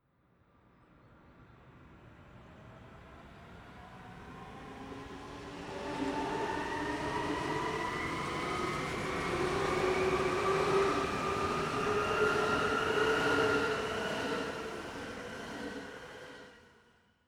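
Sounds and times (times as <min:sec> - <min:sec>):
city train accelerating and departing: 0:03.8 - 0:16.6.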